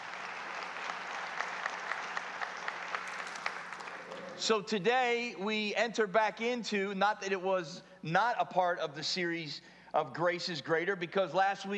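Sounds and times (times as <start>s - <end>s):
roomful of people applauding: 0.0s - 4.5s
speech: 4.4s - 11.7s.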